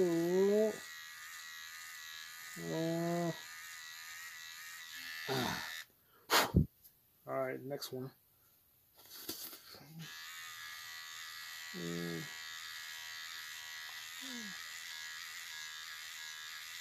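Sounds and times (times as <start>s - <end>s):
electric shaver shaving a face: 0.0s - 5.9s, 9.9s - 16.7s
speech: 7.7s - 8.2s, 11.8s - 12.4s.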